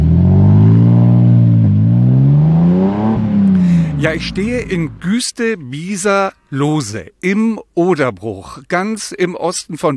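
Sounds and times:
car engine revving and driving off: 0.0 - 5.1
speech: 4.0 - 9.9.

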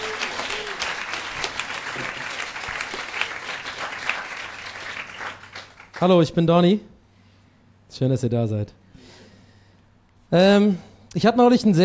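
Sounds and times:
audience applause: 0.0 - 6.0
speech: 6.0 - 6.9, 7.9 - 8.8, 10.3 - 11.8.

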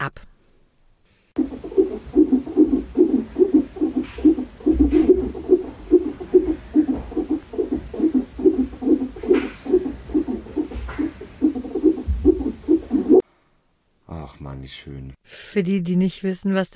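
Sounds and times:
speech: 0.0 - 0.3, 14.7 - 16.7
unborn baby's heartbeat recording: 1.4 - 13.2.

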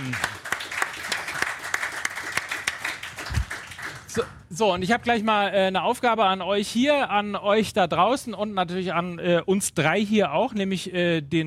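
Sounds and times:
live audience applauding: 0.0 - 4.2
speech: 4.2 - 11.4.

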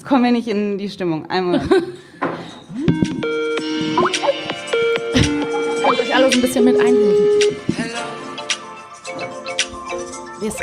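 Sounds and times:
speech: 0.1 - 2.2, 6.3 - 7.6, 10.4 - 10.6
ringtone melody played from phone: 2.8 - 8.0.

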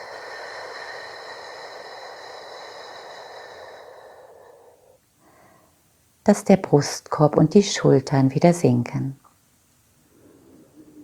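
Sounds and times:
slow exhale during a breathing exercise: 0.0 - 5.8
speech: 6.3 - 9.2.

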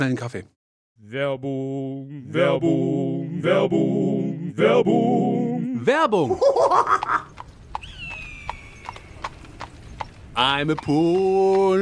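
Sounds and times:
speech: 0.0 - 7.3, 10.4 - 11.7
laughter: 6.3 - 7.3
horse hooves clip-clopping at a walk: 6.6 - 11.7.

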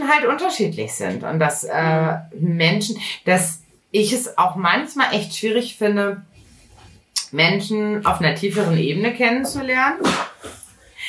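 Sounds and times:
speech: 0.1 - 6.3, 7.3 - 11.0
sneeze: 10.0 - 10.6.

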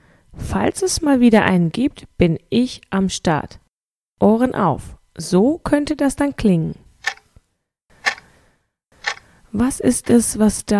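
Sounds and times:
speech: 0.5 - 3.6, 4.2 - 7.2, 9.5 - 10.7
clock ticking: 7.0 - 7.2, 8.0 - 8.2, 9.0 - 9.2.

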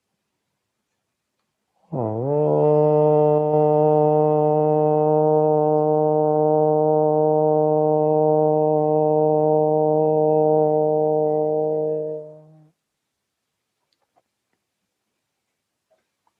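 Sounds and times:
chanted mantra: 1.9 - 12.7.

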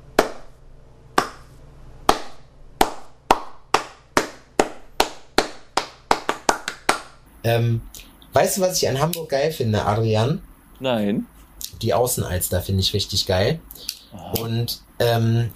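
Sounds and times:
single person clapping hands: 0.2 - 0.4, 1.2 - 1.5, 2.1 - 7.2
speech: 7.4 - 15.5.

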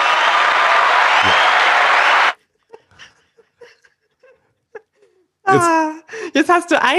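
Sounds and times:
applause sound effect from soundboard button: 0.0 - 2.4
speech: 5.6 - 5.8, 6.4 - 6.9.

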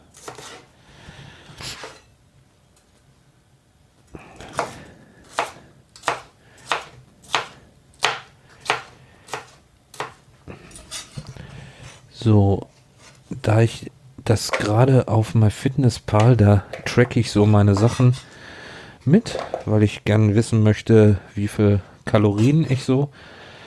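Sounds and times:
knife chopping bell pepper on a cutting board: 4.5 - 10.2
speech: 12.2 - 12.7, 13.5 - 18.3, 19.0 - 23.4.

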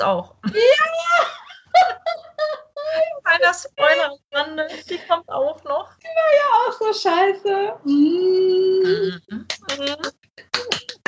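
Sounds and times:
speech: 0.0 - 1.0, 3.4 - 10.2
hand clapping: 9.4 - 11.0.

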